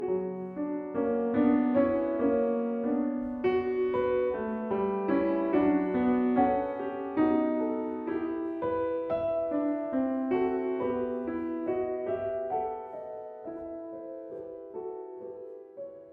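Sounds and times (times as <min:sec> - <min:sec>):
keyboard sonata in B minor: 0:00.0 - 0:16.1.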